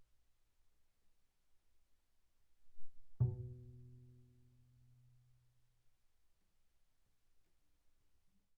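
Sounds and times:
very soft double bass pizzicato on the D string from D2 to B2: 0:02.8 - 0:05.1.

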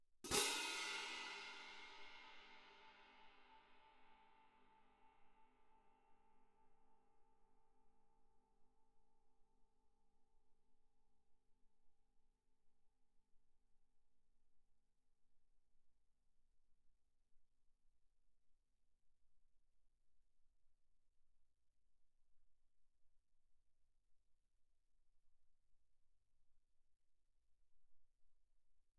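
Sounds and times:
French orchestral crash cymbals played mezzo forte: 0:00.3 - 0:03.8.

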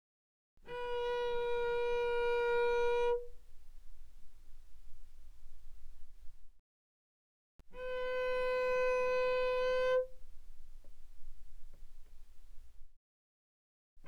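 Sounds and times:
cello bowed mezzo-forte on the D string D4 and D5: 0:00.7 - 0:06.2, 0:07.7 - 0:12.9.

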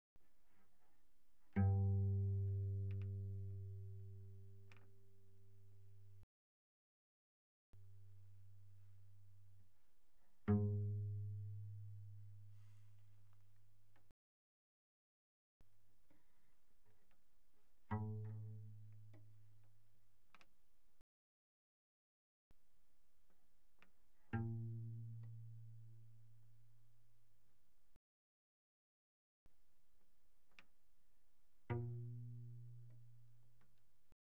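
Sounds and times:
cello plucked pianissimo on the G string: 0:01.5 - 0:06.2, 0:10.2 - 0:14.1, 0:17.8 - 0:19.6, 0:24.3 - 0:26.4, 0:31.6 - 0:33.8.

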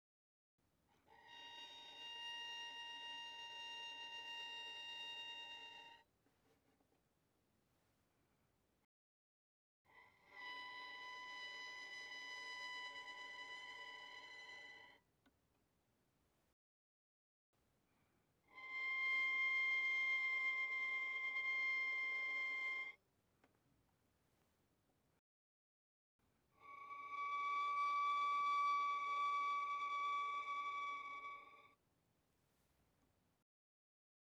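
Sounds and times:
violin bowed very softly on the D string: 0:01.1 - 0:06.0, 0:10.2 - 0:15.0, 0:18.5 - 0:23.0, 0:26.6 - 0:31.8.

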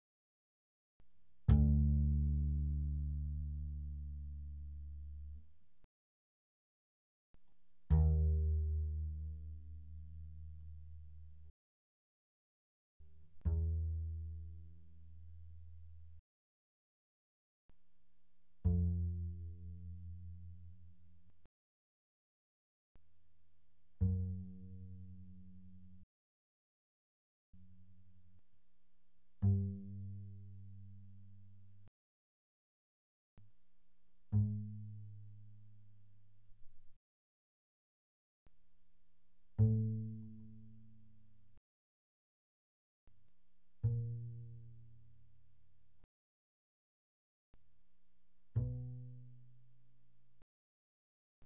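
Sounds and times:
double bass pizzicato mezzo forte on the D string: 0:01.5 - 0:05.5, 0:07.8 - 0:11.5, 0:13.0 - 0:16.2, 0:18.6 - 0:21.3, 0:24.0 - 0:26.0, 0:29.4 - 0:31.9, 0:34.2 - 0:37.0, 0:39.5 - 0:41.5, 0:43.8 - 0:45.4, 0:48.5 - 0:49.9.

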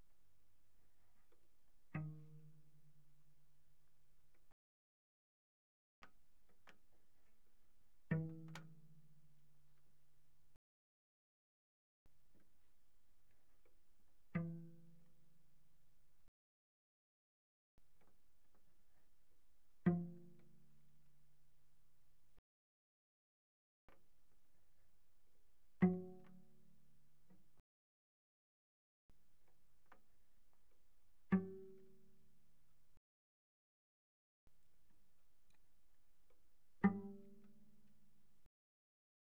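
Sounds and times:
cello pizzicato pianissimo sul C: 0:00.0 - 0:04.5, 0:06.6 - 0:10.5, 0:12.1 - 0:16.3, 0:17.8 - 0:22.4, 0:23.9 - 0:27.6, 0:29.3 - 0:33.0, 0:34.5 - 0:38.5.

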